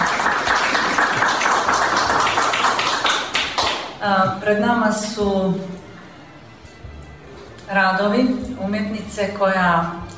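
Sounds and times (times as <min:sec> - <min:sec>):
audience applause at a wind festival event in Kotor: 0:00.0 - 0:03.9
speech: 0:04.0 - 0:05.8, 0:07.7 - 0:10.0.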